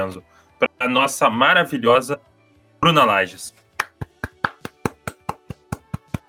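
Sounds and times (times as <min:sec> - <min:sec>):
speech: 0:00.0 - 0:03.6
round of applause: 0:03.8 - 0:06.2.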